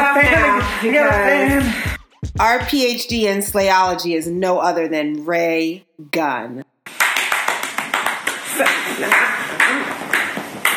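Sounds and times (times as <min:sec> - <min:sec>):
speech: 0:00.2 - 0:06.7, 0:08.6 - 0:09.9
slow clapping: 0:06.9 - 0:10.7.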